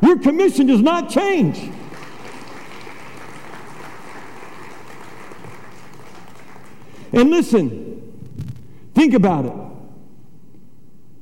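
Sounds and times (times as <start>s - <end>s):
speech: 0.0s - 1.8s, 7.1s - 7.8s, 9.0s - 9.6s
audience clapping: 1.6s - 7.6s.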